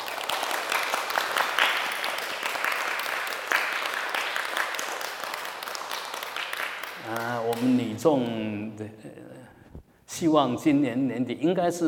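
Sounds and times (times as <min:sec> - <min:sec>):
applause: 0:00.0 - 0:07.7
speech: 0:07.7 - 0:09.6, 0:10.2 - 0:11.8.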